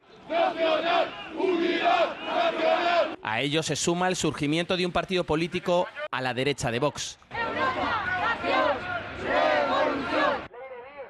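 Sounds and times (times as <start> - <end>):
crowd shouting at a Francoist rally in Spain: 0.1 - 3.2, 7.3 - 11.0
speech: 0.3 - 7.3.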